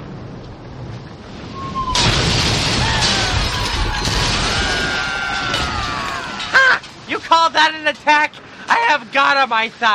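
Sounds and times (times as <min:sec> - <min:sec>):
ship's cannons firing a barrage: 0:02.0 - 0:06.6
speech: 0:07.4 - 0:09.9.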